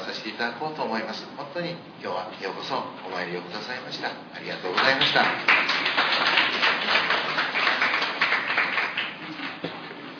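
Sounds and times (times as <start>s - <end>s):
speech: 0.3s - 6.0s
crowd applause: 4.8s - 9.8s.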